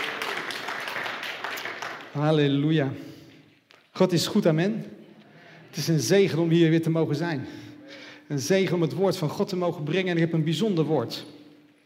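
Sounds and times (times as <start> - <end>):
audience applause: 0.0 - 2.2
speech: 2.2 - 3.1, 4.0 - 5.0, 5.7 - 7.6, 8.3 - 11.4.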